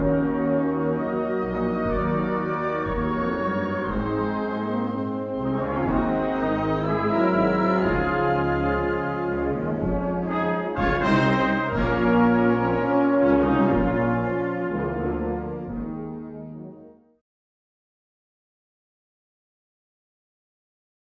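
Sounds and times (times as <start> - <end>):
marching: 0.0 - 16.2.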